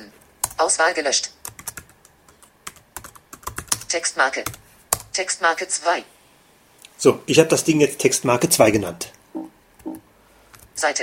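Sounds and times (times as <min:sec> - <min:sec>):
typing on a computer keyboard, Enter key: 0:00.4 - 0:00.6, 0:01.4 - 0:05.2, 0:09.8 - 0:10.7
speech: 0:00.6 - 0:01.4, 0:03.9 - 0:04.6, 0:05.2 - 0:06.1, 0:07.0 - 0:09.2, 0:10.8 - 0:11.0.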